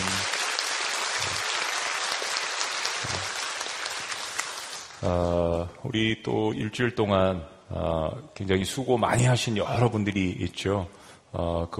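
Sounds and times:
audience applause: 0:00.0 - 0:05.1
speech: 0:05.0 - 0:11.7.

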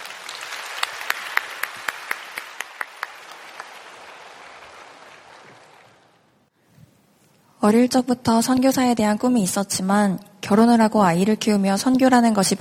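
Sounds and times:
audience applauding a speaker's entrance: 0:00.0 - 0:06.4
speech: 0:07.6 - 0:12.5.

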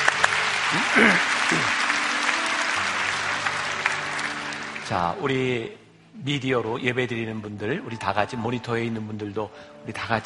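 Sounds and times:
audience applause: 0:00.0 - 0:05.2
speech: 0:00.7 - 0:01.3, 0:04.9 - 0:10.2.

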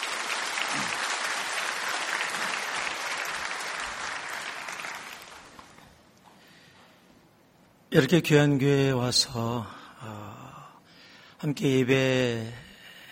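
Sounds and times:
audience applause: 0:00.0 - 0:05.9
speech: 0:07.9 - 0:10.2, 0:11.4 - 0:12.6.

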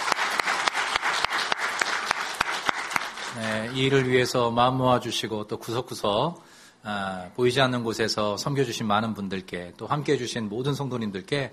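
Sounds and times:
congregation applause in a church: 0:00.0 - 0:04.4
speech: 0:03.4 - 0:11.5.

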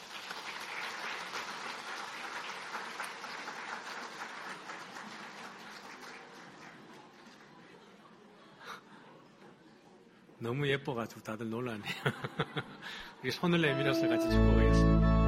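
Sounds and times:
audience applauding to welcome a baby: 0:00.0 - 0:07.8
speech: 0:10.4 - 0:15.1
laughter: 0:11.8 - 0:13.2.

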